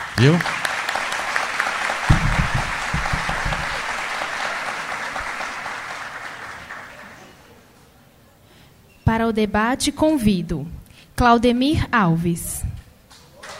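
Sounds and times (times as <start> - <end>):
audience applause: 0.0 - 7.5, 13.4 - 13.5
speech: 0.2 - 0.6, 9.3 - 12.6.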